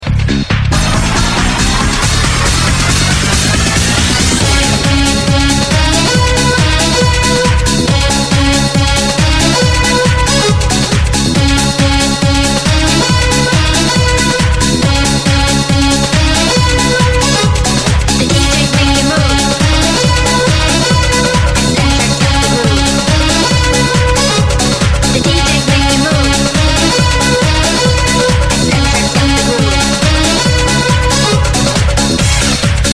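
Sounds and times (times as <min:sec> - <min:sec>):
rave music: 0:00.0 - 0:32.9.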